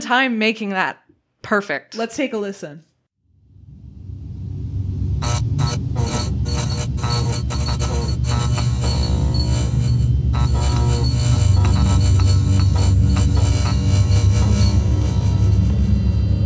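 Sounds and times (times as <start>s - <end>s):
speech: 0.1s - 2.9s
light bulb steady loud buzzing hum: 5.2s - 16.4s.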